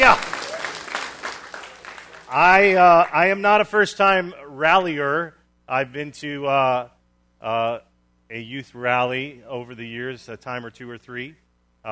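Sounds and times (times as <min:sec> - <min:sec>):
youth rally audience applause welcoming first-time ralliers: 0:00.0 - 0:03.3
speech: 0:02.3 - 0:11.9.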